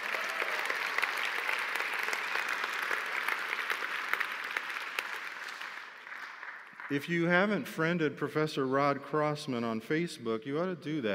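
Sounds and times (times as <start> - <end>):
round of applause: 0.0 - 7.6
speech: 6.9 - 11.1.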